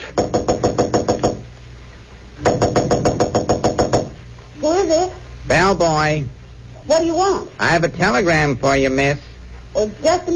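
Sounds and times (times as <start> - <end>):
low hum: 0.0 - 10.3
knocking on a hotel room door: 0.2 - 1.4, 2.4 - 4.2
speech: 4.9 - 10.3.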